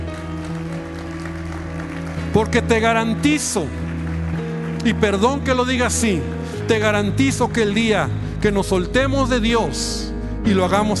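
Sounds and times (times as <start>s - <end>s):
audience applause: 0.0s - 7.7s
speech: 2.4s - 3.9s, 4.8s - 10.9s.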